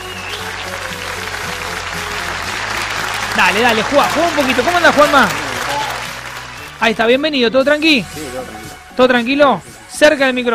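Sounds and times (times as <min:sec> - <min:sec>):
crowd applauding: 0:00.0 - 0:07.3
speech: 0:03.4 - 0:05.4, 0:06.8 - 0:10.5.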